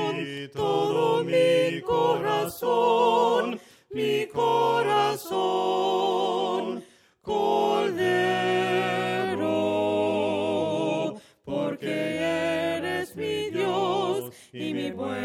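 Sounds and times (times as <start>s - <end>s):
voices singing hymns a cappella: 0.0s - 15.2s.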